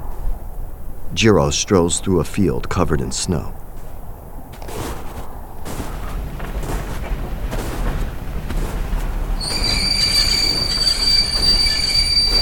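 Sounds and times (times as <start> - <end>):
speech: 1.1 - 3.6
train wheels rumbling: 3.7 - 12.3
train wheels squealing while screeching to a halt: 9.4 - 12.3.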